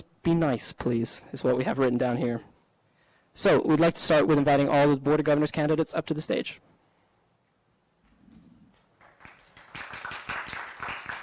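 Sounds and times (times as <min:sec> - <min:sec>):
speech: 0:00.0 - 0:02.5, 0:03.4 - 0:06.7
audience clapping: 0:08.8 - 0:11.2.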